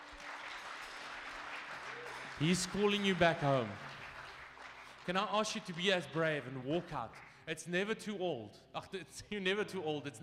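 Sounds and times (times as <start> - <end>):
audience applause: 0.0 - 7.4
speech: 2.4 - 3.9, 5.0 - 10.2.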